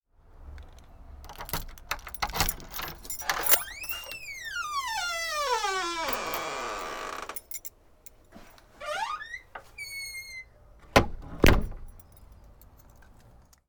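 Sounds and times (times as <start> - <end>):
front door opening: 1.3 - 7.7, 8.3 - 12.2.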